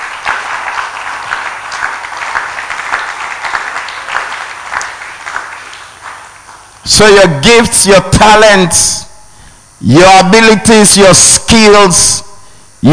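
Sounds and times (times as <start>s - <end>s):
audience clapping and shouting: 0.0s - 6.8s
speech: 7.0s - 9.1s, 9.8s - 12.2s.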